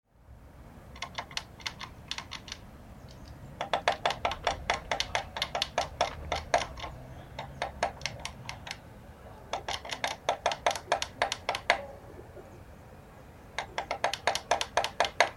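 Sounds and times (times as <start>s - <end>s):
Eurasian blue tit thin whistle and clicking notes: 1.0s - 8.8s, 9.5s - 11.9s, 13.6s - 15.3s.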